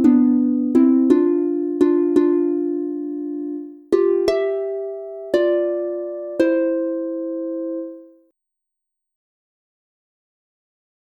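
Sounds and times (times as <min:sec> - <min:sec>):
two-voice harp playing in C major: 0:00.0 - 0:08.2.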